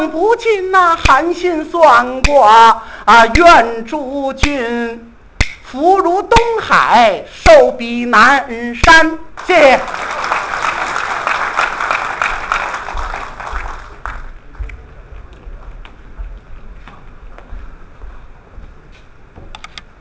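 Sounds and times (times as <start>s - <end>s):
speech: 0.0s - 5.1s, 5.7s - 10.4s
crowd applause: 9.4s - 14.6s.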